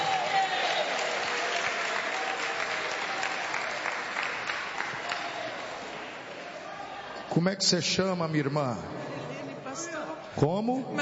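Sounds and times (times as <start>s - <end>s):
audience applause: 0.0s - 6.6s
speech: 7.4s - 9.1s, 9.8s - 11.0s.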